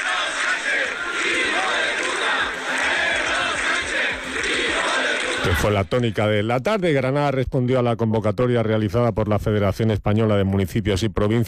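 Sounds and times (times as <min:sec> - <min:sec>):
crowd shouting slogans against the government at a protest rally in the Plaza del Carmen: 0:00.0 - 0:05.7
speech: 0:05.4 - 0:11.4.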